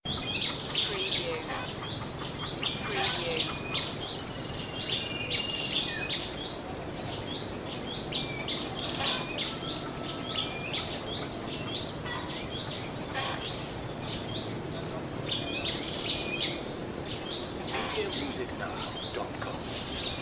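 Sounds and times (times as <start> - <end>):
outdoor daytime ambience: 0.0 - 20.1.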